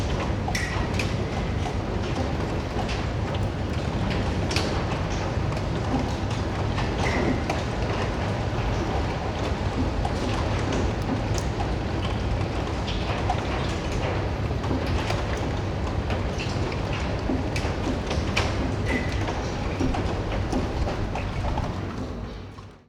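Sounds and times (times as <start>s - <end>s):
rain dripping in a Shanghai suburb: 0.0s - 22.7s.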